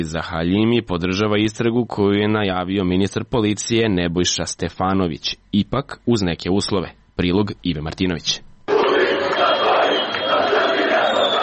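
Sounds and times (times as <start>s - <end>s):
speech: 0.0s - 8.5s
football fans chanting after an Armenia-Albania national team match: 8.7s - 11.4s.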